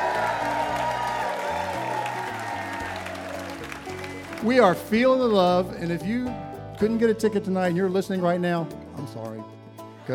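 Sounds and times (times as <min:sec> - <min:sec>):
faint cheers: 0:00.0 - 0:04.4
audience clapping: 0:00.0 - 0:05.2
speech: 0:04.4 - 0:10.1.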